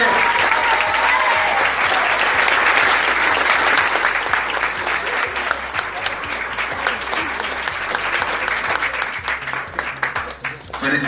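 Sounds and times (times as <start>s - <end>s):
audience applause: 0.0s - 10.9s.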